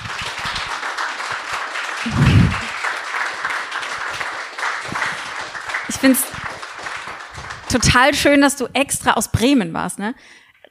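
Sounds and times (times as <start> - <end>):
audience applause: 0.0 - 8.4
speech: 6.0 - 6.3, 7.7 - 10.4.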